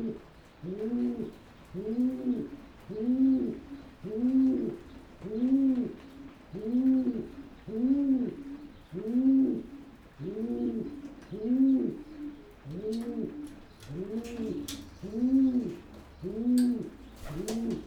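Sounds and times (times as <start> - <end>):
pigeon cooing: 0.0 - 17.8.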